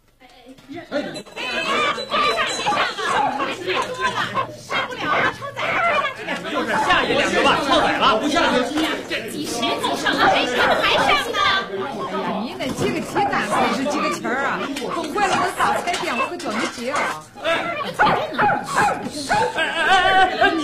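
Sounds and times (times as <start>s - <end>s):
crowd arguing and shouting: 0.2s - 20.6s
laughter: 1.0s - 20.6s
dog barking and yipping: 4.1s - 6.1s, 13.2s - 19.6s.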